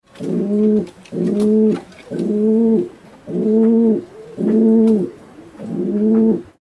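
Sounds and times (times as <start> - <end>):
pigeons: 0.1 - 6.5.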